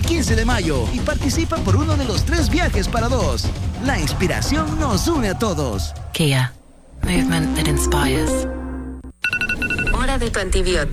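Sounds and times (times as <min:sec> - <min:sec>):
speech: 0:00.2 - 0:08.6, 0:10.2 - 0:10.9
mobile phone ringtone beeps: 0:09.2 - 0:10.0.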